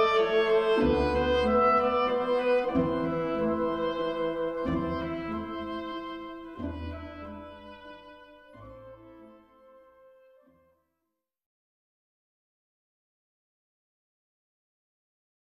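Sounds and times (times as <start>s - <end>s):
oboe: 0.0s - 10.6s.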